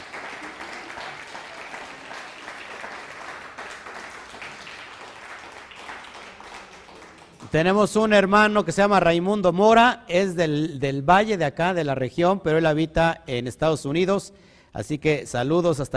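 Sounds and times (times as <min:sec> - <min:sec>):
crowd applause: 0:00.0 - 0:07.7
speech: 0:07.5 - 0:15.9.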